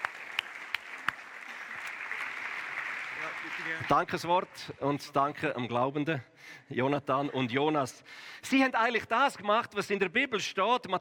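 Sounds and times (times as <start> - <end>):
audience applause: 0.0 - 4.6
speech: 3.4 - 11.0.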